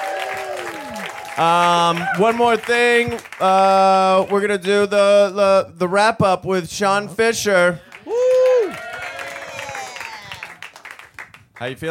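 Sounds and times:
audience applause for the panel: 0:00.0 - 0:04.4, 0:07.9 - 0:11.4
speech: 0:01.4 - 0:07.9, 0:11.6 - 0:11.8.

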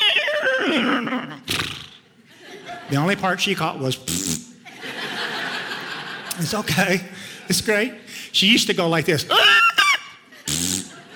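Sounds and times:
laughter: 0:00.0 - 0:01.5, 0:02.2 - 0:03.5, 0:04.5 - 0:08.0, 0:09.3 - 0:11.1
person imitating a horse neigh: 0:00.0 - 0:02.0, 0:09.3 - 0:11.0
speech: 0:00.7 - 0:01.7, 0:02.9 - 0:04.3, 0:06.4 - 0:09.5.

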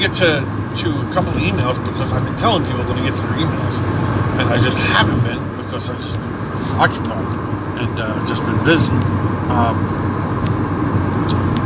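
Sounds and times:
speech: 0:00.0 - 0:10.3
car driven, heard from inside the cabin: 0:00.0 - 0:11.6.

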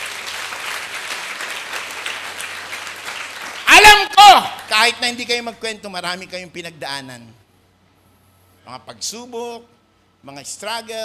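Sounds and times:
church congregation clapping during a worship service: 0:00.0 - 0:05.2
speech: 0:04.2 - 0:07.4, 0:08.7 - 0:11.0.

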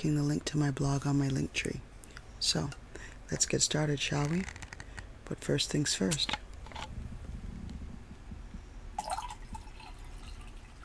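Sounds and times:
speech: 0:00.0 - 0:04.6, 0:05.3 - 0:06.9
steady low hum: 0:00.0 - 0:10.8
wine pouring into a glass: 0:09.0 - 0:10.8.

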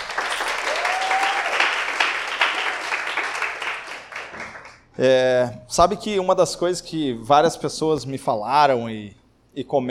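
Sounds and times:
audience applause: 0:00.0 - 0:04.8
speech: 0:05.0 - 0:09.9.

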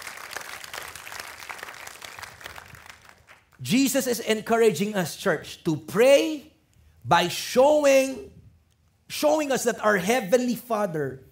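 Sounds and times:
church congregation at The Rock City Church applauding: 0:00.0 - 0:03.7
speech: 0:03.6 - 0:06.5, 0:07.1 - 0:08.4, 0:09.1 - 0:11.3.

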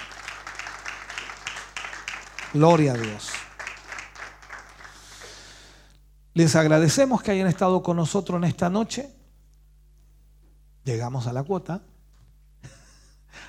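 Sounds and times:
audience applause: 0:00.0 - 0:05.6
speech: 0:02.5 - 0:03.3, 0:06.4 - 0:09.2, 0:10.9 - 0:11.9.

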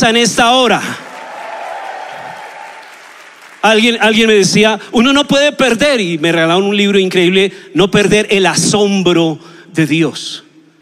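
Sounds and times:
speech: 0:00.0 - 0:01.0, 0:03.6 - 0:10.4
audience applause: 0:00.8 - 0:04.0.

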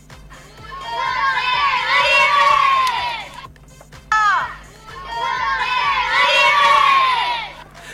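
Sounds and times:
young children cheering at handball match: 0:00.5 - 0:03.5, 0:04.3 - 0:07.7
sharp shout: 0:00.6 - 0:03.4, 0:04.1 - 0:07.6.

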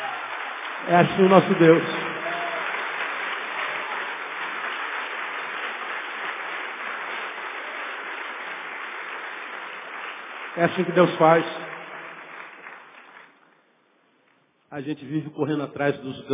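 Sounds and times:
audience applause: 0:00.0 - 0:13.6
speech: 0:00.8 - 0:02.1, 0:10.6 - 0:11.7, 0:14.7 - 0:16.3.

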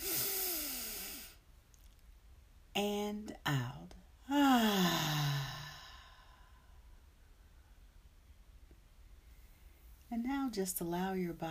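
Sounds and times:
deep inhale during a guided breathing meditation: 0:00.0 - 0:01.4, 0:04.6 - 0:06.9
speech: 0:02.8 - 0:05.4, 0:10.5 - 0:11.4.

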